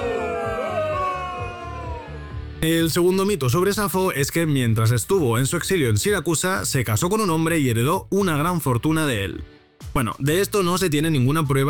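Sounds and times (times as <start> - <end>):
crowd booing: 0.0 - 2.6
speech: 2.6 - 11.6.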